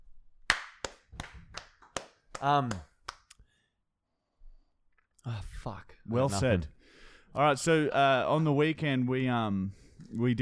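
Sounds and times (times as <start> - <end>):
hand clapping: 0.5 - 3.4
speech: 2.4 - 2.9, 5.2 - 6.8, 7.4 - 10.4.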